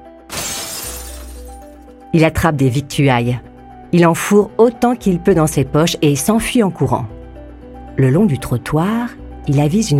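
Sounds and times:
shop window glass shattered by a stone: 0.3s - 1.6s
speech: 2.1s - 7.2s, 8.0s - 9.9s.

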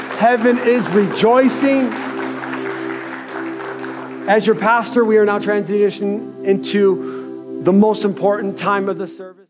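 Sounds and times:
audience clapping: 0.0s - 5.5s
speech: 0.2s - 2.1s, 4.3s - 9.4s.

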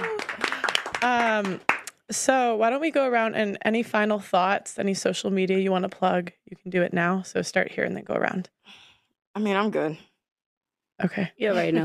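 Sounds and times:
person whooping: 0.0s - 0.6s
voices cheering: 0.0s - 0.8s
audience clapping: 0.0s - 2.0s
speech: 1.0s - 8.8s, 9.4s - 10.1s, 11.0s - 11.8s.

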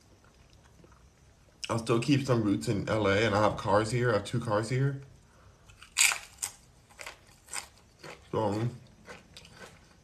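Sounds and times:
speech: 1.7s - 5.1s, 8.4s - 8.8s
crunching on a chip: 5.7s - 10.0s.

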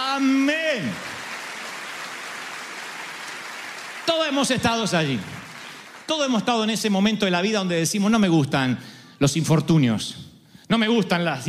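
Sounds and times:
crowd applauding: 0.0s - 6.8s
speech: 0.2s - 1.2s, 4.1s - 5.4s, 6.1s - 11.4s.

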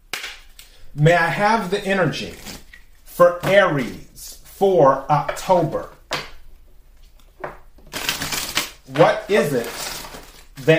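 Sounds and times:
speech: 1.0s - 2.5s, 3.2s - 6.0s, 8.9s - 9.9s, 10.6s - 10.7s
tarot cards being shuffled and drawn: 7.0s - 10.7s.

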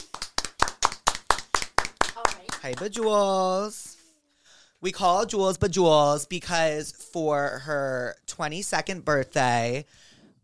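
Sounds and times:
audience clapping: 0.0s - 3.3s
speech: 2.6s - 4.0s, 4.8s - 10.1s.

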